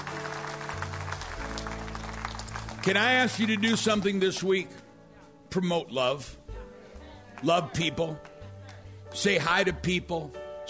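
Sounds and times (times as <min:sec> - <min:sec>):
audience applause: 0:00.0 - 0:04.5
speech: 0:02.8 - 0:04.8, 0:05.5 - 0:06.4, 0:07.4 - 0:08.3, 0:09.1 - 0:10.6.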